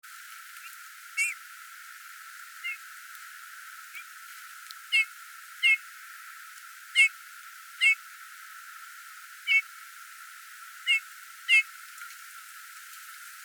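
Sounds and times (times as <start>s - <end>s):
Eurasian bullfinch uttering soft plaintive whistled notes: 4.9s - 5.8s, 7.8s - 8.0s, 10.9s - 11.7s.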